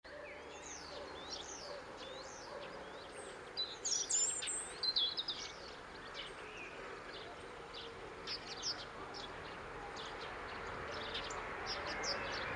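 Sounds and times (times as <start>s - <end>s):
European robin giving high sweeping notes: 0.1s - 12.5s.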